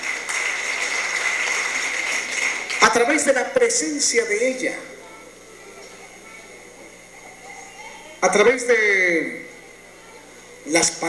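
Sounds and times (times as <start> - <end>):
crowd applause: 0.0 - 4.9
speech: 2.8 - 5.0, 8.2 - 9.5, 10.6 - 11.0.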